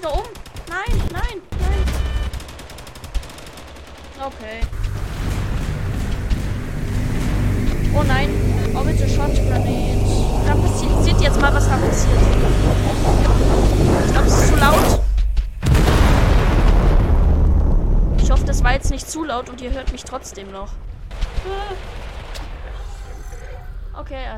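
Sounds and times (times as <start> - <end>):
video game gunfire: 0.0 - 7.4, 15.6 - 22.8
speech: 4.2 - 5.0, 10.8 - 15.0, 19.0 - 22.0, 24.0 - 24.3
video game explosions: 4.6 - 23.9
heavy low rumble: 4.6 - 24.3.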